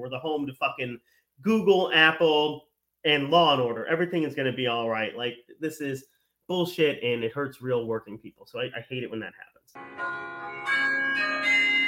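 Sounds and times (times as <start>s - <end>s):
speech: 0.0s - 10.8s
clock tower bells chiming a tune at Cornell University, Ithaca, New York: 9.8s - 11.8s.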